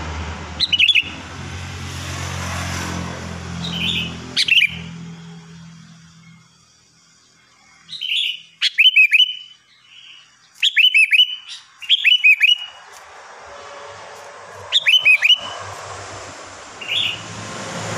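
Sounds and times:
sooty-headed bulbul song: 0.6 - 1.2, 3.6 - 13.0, 14.5 - 15.8, 16.8 - 17.3.

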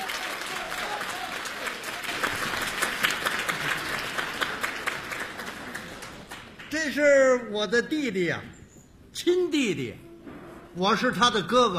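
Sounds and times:
audience applause welcoming two performers at a comedy show: 0.0 - 6.7
speech: 6.8 - 8.6, 9.2 - 10.0, 10.8 - 11.7.

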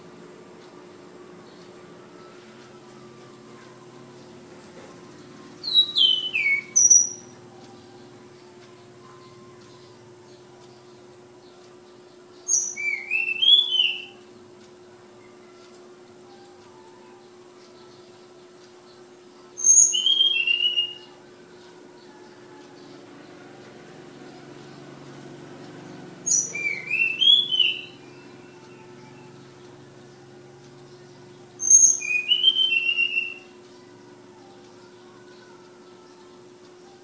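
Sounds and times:
faint steady hum: 0.0 - 37.0
flowerpecker song: 5.6 - 7.4, 12.4 - 14.2, 19.6 - 21.2, 26.2 - 29.4, 31.6 - 33.6.

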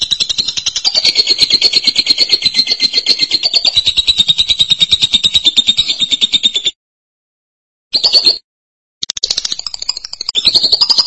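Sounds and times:
lovebird fast buzzy chatter: 0.0 - 6.7, 9.0 - 11.0.

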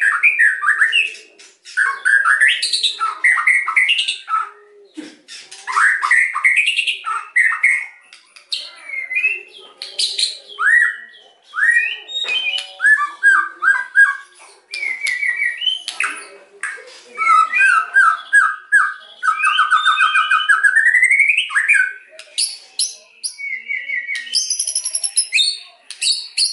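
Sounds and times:
white-rumped shama singing: 0.0 - 26.5.

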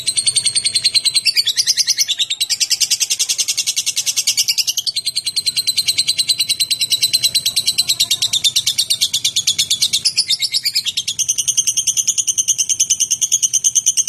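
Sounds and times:
lovebird song of fast high-pitched chirping chatter: 0.0 - 14.0.

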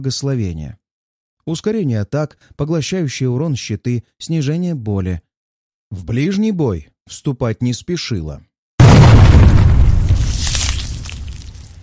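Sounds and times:
speech: 0.0 - 0.8, 1.5 - 5.3, 5.9 - 8.5
thunderous explosion of a bursting mycoid: 8.8 - 11.8.

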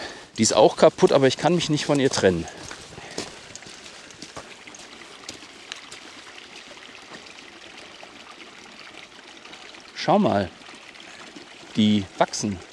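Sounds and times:
brook beside a willow babbling: 0.0 - 12.7
speech: 0.4 - 2.7, 10.1 - 10.6, 11.8 - 12.7.

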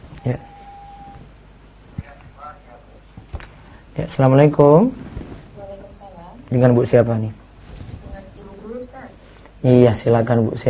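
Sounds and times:
speech: 0.2 - 0.5, 4.0 - 5.0, 6.5 - 7.4, 9.6 - 10.6
brief steady telephone beep: 0.2 - 1.2.

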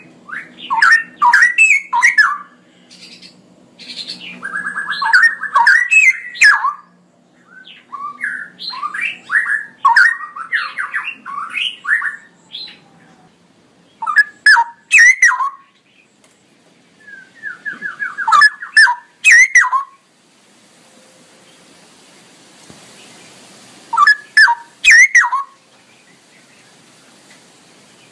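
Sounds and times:
Straw-headed bulbul song: 0.0 - 12.8, 13.9 - 16.0, 17.0 - 20.1, 22.9 - 26.8.

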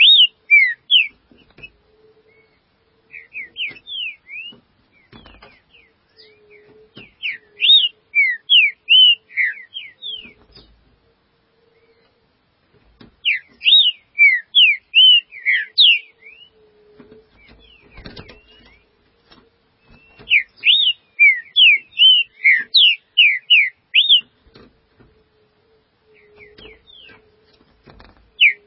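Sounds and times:
green-winged saltator song of slurred whistles: 0.0 - 10.7, 13.2 - 18.9, 19.8 - 24.4, 26.0 - 27.2, 28.3 - 28.6.

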